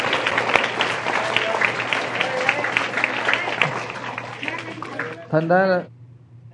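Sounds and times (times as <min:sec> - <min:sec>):
audience clapping at a community gathering: 0:00.0 - 0:05.8
speech: 0:05.3 - 0:06.0.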